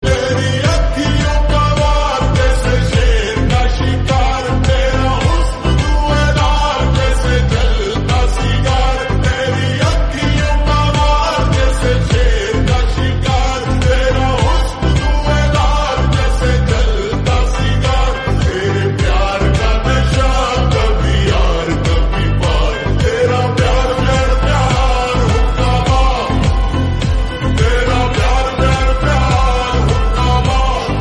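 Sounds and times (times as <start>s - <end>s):
slowed remix music: 0.0s - 30.9s.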